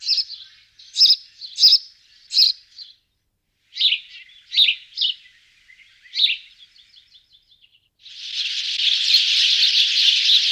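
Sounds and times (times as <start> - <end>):
sparrow chirping: 0.0 - 3.1, 3.7 - 10.5.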